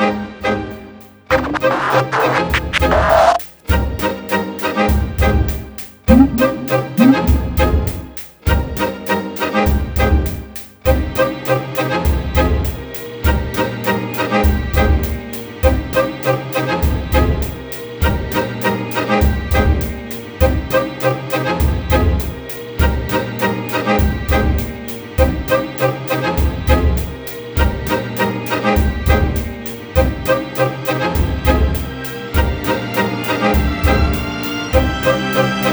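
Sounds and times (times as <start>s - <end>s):
hip hop style music: 0.1s - 35.7s.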